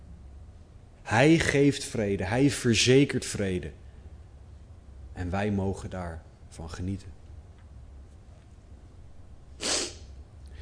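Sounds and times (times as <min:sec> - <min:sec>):
hiss: 0:00.0 - 0:10.6
speech: 0:01.1 - 0:03.8, 0:05.2 - 0:07.2
sneeze during a Bible reading: 0:09.6 - 0:10.2.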